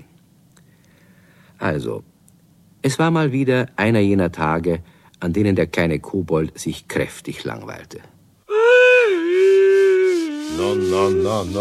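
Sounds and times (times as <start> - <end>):
speech: 1.6 - 2.1, 2.8 - 8.1, 10.5 - 11.5
big wide yawn: 8.5 - 10.9.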